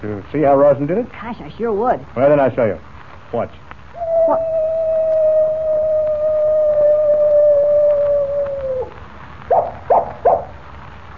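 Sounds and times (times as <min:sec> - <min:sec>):
speech: 0:00.0 - 0:03.7
coyote howling: 0:03.9 - 0:10.5.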